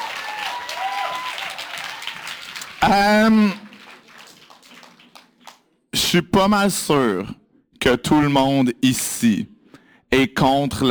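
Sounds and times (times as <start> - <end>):
audience applause: 0.0 - 5.7
speech: 2.8 - 3.6, 6.1 - 9.5, 10.1 - 10.9.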